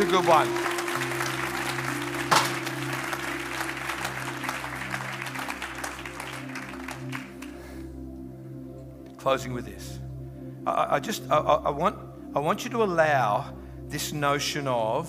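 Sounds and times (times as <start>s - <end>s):
speech: 0.0s - 0.7s, 9.2s - 10.0s, 10.6s - 15.0s
audience applause: 0.0s - 7.7s.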